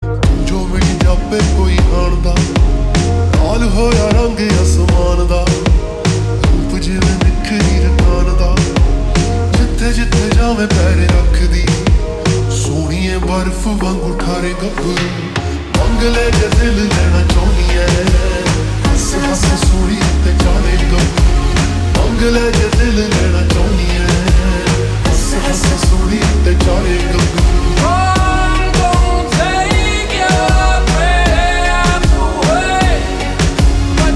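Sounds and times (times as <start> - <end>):
slowed reverb music: 0.0 - 34.1.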